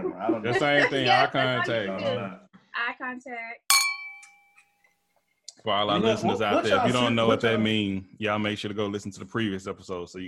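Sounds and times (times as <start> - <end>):
speech: 0.2 - 3.8, 5.6 - 10.2
glasses clinking in a toast: 3.7 - 4.6.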